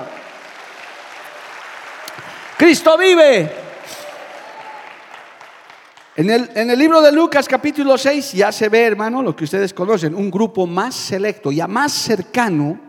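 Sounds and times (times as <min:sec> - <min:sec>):
audience applause: 0:00.0 - 0:06.3
speech: 0:02.6 - 0:03.6, 0:06.2 - 0:12.8
man shouting: 0:02.6 - 0:04.8.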